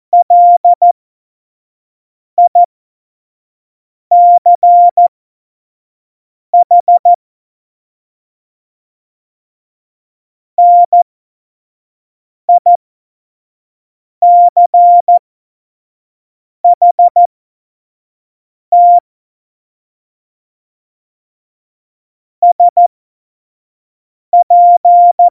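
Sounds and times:
Morse code course beeps: 0:00.2 - 0:00.9, 0:04.1 - 0:05.1, 0:06.6 - 0:07.2, 0:10.6 - 0:11.0, 0:14.2 - 0:15.2, 0:16.7 - 0:17.3, 0:18.8 - 0:19.0, 0:22.4 - 0:22.9, 0:24.4 - 0:25.2.

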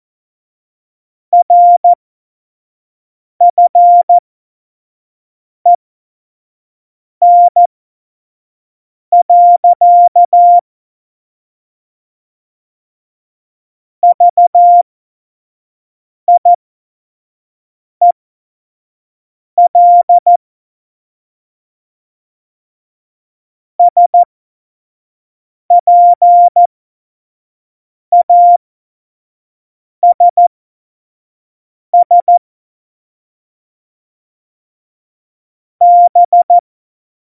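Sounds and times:
morse code beeps: 0:01.3 - 0:02.0, 0:03.4 - 0:04.2, 0:07.2 - 0:07.6, 0:09.1 - 0:10.6, 0:14.1 - 0:14.9, 0:19.6 - 0:20.4, 0:23.9 - 0:24.3, 0:25.7 - 0:26.6, 0:28.1 - 0:28.6, 0:30.1 - 0:30.5, 0:31.9 - 0:32.4, 0:35.8 - 0:36.6.

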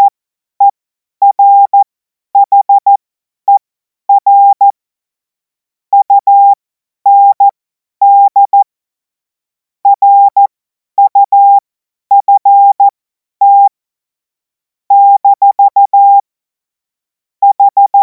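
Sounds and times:
CW Morse code beeps: 0:01.2 - 0:03.6, 0:04.2 - 0:04.7, 0:06.0 - 0:08.6, 0:09.9 - 0:10.4, 0:11.0 - 0:13.7, 0:14.9 - 0:16.2, 0:17.4 - 0:18.0.

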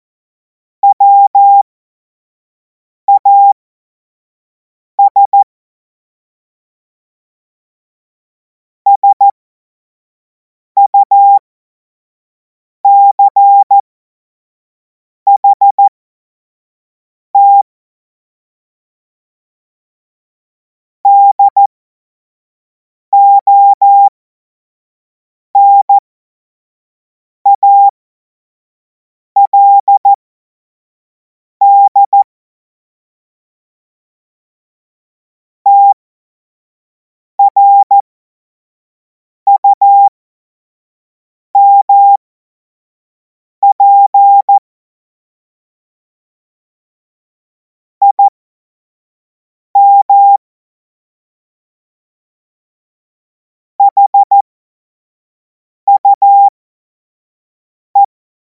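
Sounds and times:
CW Morse code beeps: 0:00.8 - 0:01.6, 0:03.1 - 0:03.6, 0:05.0 - 0:05.4, 0:08.9 - 0:09.3, 0:10.8 - 0:11.4, 0:12.9 - 0:13.8, 0:15.3 - 0:15.9, 0:17.4 - 0:17.6, 0:21.1 - 0:21.7, 0:23.2 - 0:24.1, 0:25.6 - 0:26.0, 0:27.5 - 0:27.9, 0:29.4 - 0:30.2, 0:31.6 - 0:32.3, 0:35.7 - 0:36.0, 0:37.4 - 0:38.0, 0:39.5 - 0:40.1, 0:41.6 - 0:42.2, 0:43.6 - 0:44.6, 0:48.0 - 0:48.4, 0:49.8 - 0:50.4, 0:53.8 - 0:54.5, 0:55.9 - 0:56.6.

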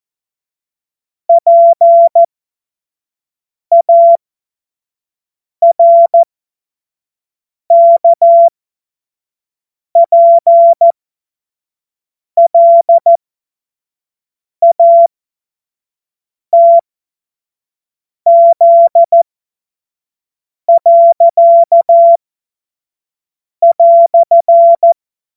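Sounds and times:
CW Morse code beeps: 0:01.3 - 0:02.3, 0:03.7 - 0:04.2, 0:05.6 - 0:06.3, 0:07.7 - 0:08.5, 0:10.0 - 0:11.0, 0:12.4 - 0:13.2, 0:14.6 - 0:15.1, 0:16.6 - 0:16.8, 0:18.3 - 0:19.2, 0:20.7 - 0:22.2, 0:23.6 - 0:25.0.

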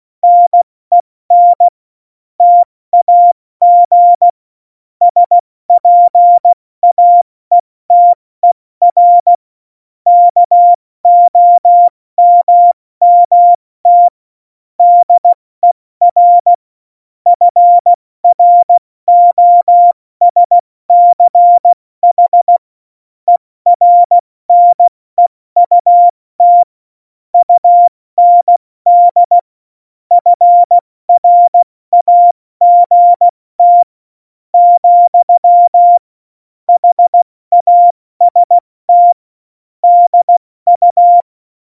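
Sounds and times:
CW Morse code beeps: 0:00.2 - 0:01.7, 0:02.4 - 0:04.3, 0:05.1 - 0:09.4, 0:10.1 - 0:14.2, 0:14.8 - 0:15.4, 0:16.1 - 0:16.6, 0:17.3 - 0:22.6, 0:23.3 - 0:24.9, 0:25.6 - 0:26.7, 0:27.4 - 0:29.4, 0:30.1 - 0:33.9, 0:34.6 - 0:36.0, 0:36.7 - 0:39.2, 0:39.8 - 0:41.3.

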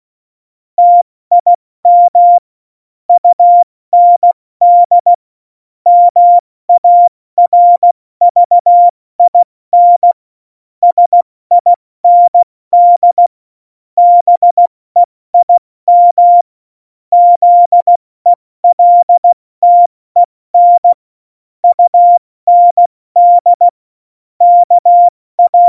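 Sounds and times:
CW Morse code beeps: 0:00.8 - 0:02.4, 0:03.2 - 0:05.1, 0:05.9 - 0:10.2, 0:10.8 - 0:13.3, 0:14.0 - 0:16.4, 0:17.1 - 0:18.0, 0:18.6 - 0:21.0, 0:21.6 - 0:23.8, 0:24.4 - 0:25.6.

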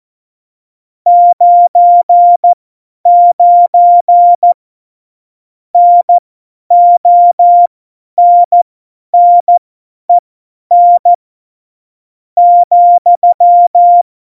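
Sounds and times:
CW morse code beeps: 0:01.1 - 0:04.6, 0:05.8 - 0:08.6, 0:09.2 - 0:09.6, 0:10.7 - 0:11.2, 0:12.4 - 0:14.0.

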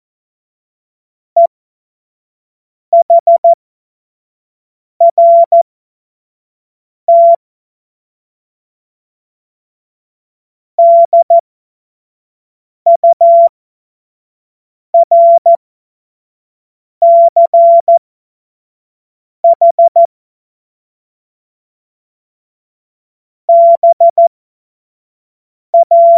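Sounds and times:
CW Morse code beeps: 0:03.0 - 0:03.6, 0:05.0 - 0:05.6, 0:07.1 - 0:07.4, 0:10.8 - 0:11.4, 0:12.9 - 0:13.5, 0:15.0 - 0:15.6, 0:17.0 - 0:18.0, 0:19.5 - 0:20.1, 0:23.5 - 0:24.3, 0:25.8 - 0:26.1.

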